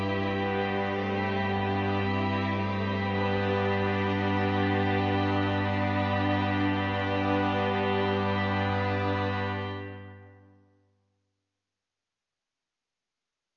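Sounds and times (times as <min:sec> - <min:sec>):
string quartet: 0:00.0 - 0:10.3.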